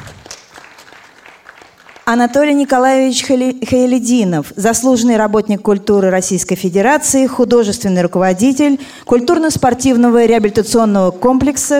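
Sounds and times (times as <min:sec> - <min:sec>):
audience applause: 0:00.0 - 0:02.2
speech: 0:02.1 - 0:11.7.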